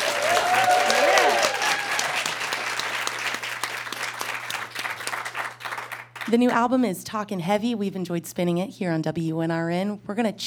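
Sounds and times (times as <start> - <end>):
studio audience applause for a guest musician in Richmond: 0.0 - 6.4
speech: 6.3 - 10.4.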